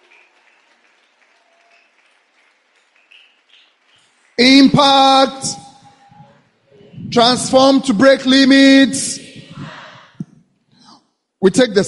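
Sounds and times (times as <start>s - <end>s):
audience applause: 0.0s - 4.4s
speech: 4.4s - 5.6s, 7.1s - 9.2s, 11.4s - 11.8s.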